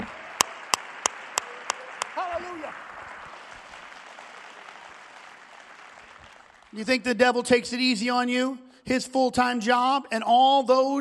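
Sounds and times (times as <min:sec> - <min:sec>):
audience clapping hands in a steady rhythm: 0:00.0 - 0:07.0
speech: 0:06.7 - 0:10.9.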